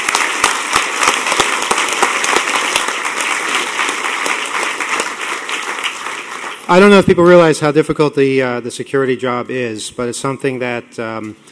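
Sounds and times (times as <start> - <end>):
crowd applause: 0.0 - 7.5
speech: 6.7 - 11.5.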